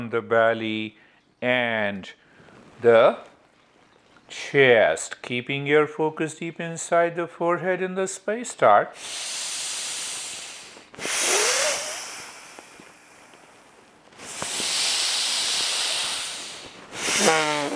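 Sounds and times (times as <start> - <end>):
speech: 0.0 - 2.2, 2.8 - 3.3, 4.3 - 9.5
long hissing breath exhalations: 8.9 - 17.7.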